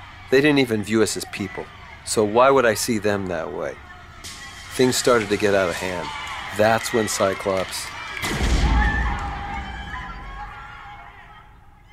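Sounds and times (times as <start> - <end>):
speech: 0.3 - 3.9, 4.8 - 8.4
warning gunshot: 8.2 - 9.4.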